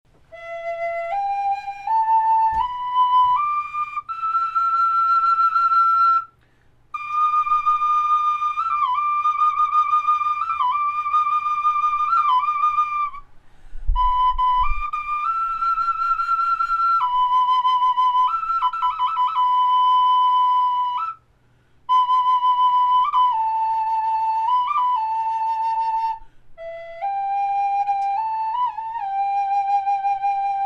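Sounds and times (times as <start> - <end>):
natural flute: 0.1 - 30.6.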